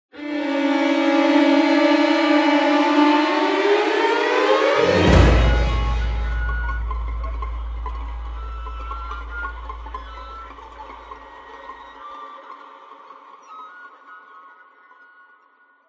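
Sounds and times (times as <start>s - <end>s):
short music crescendo: 0.2s - 11.8s.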